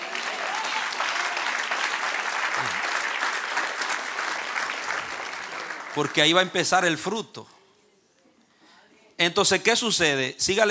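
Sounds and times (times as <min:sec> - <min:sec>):
audience applause: 0:00.0 - 0:06.4
speech: 0:06.0 - 0:07.6, 0:09.2 - 0:10.6.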